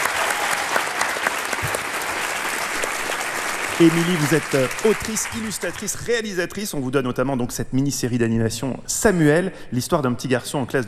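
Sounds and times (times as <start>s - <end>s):
audience applause: 0.0s - 6.2s
speech: 3.8s - 10.8s.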